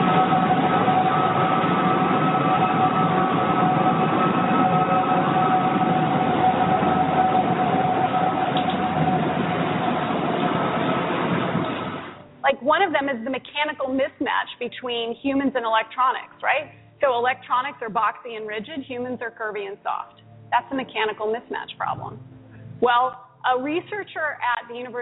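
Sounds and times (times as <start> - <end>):
skyscraper whistling in the wind with a two-toned cry: 0.0 - 12.2
speech: 12.7 - 25.0.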